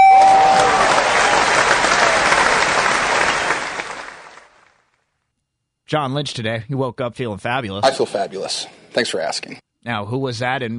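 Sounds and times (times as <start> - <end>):
applause sound effect: 0.0 - 4.9
speech: 5.9 - 10.7.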